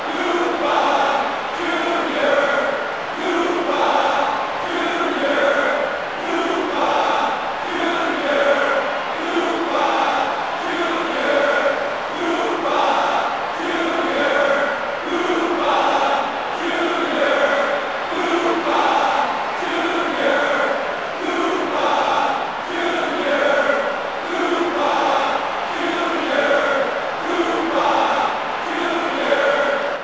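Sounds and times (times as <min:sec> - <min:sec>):
crowd singing: 0:00.0 - 0:30.0.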